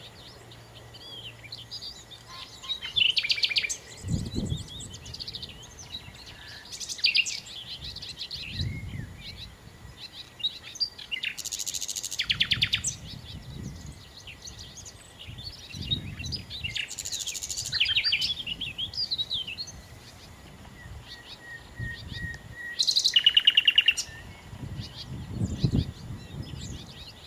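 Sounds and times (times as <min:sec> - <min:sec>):
common nightingale song: 0:00.0 - 0:27.2
faint birds: 0:00.0 - 0:27.2.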